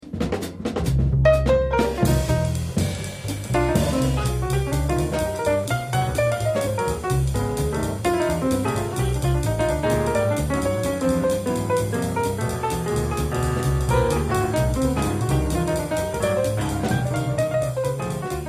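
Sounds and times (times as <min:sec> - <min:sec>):
solo piano: 0:01.2 - 0:18.4.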